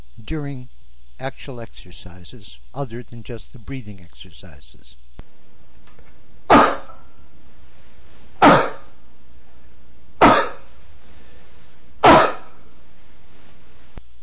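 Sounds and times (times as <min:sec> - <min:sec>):
speech: 0:00.3 - 0:05.0
person coughing: 0:08.4 - 0:08.9, 0:10.2 - 0:10.7, 0:12.0 - 0:12.6.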